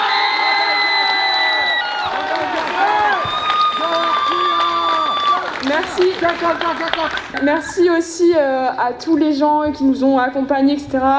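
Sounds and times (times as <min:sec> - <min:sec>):
audience applauding: 0:00.0 - 0:07.7
speech: 0:05.8 - 0:11.1.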